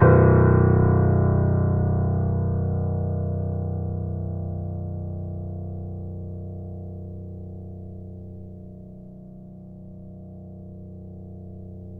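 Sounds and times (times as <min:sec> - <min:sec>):
grand piano note: 0:00.0 - 0:04.8.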